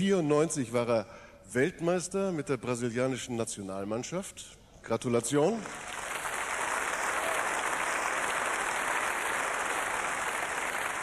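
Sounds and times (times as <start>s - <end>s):
speech: 0.0s - 6.0s
audience applause: 5.6s - 11.0s.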